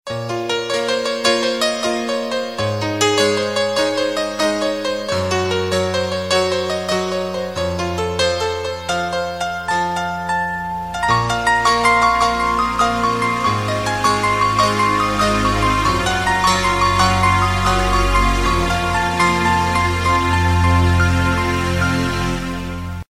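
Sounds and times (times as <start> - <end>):
beautiful piano ringtone: 0.1 - 23.0.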